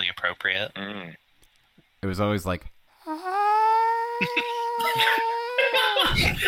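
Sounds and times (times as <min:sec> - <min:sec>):
speech: 0:00.3 - 0:01.2, 0:02.0 - 0:03.3, 0:04.2 - 0:06.4
person imitating a soft gentle scream: 0:03.0 - 0:06.2.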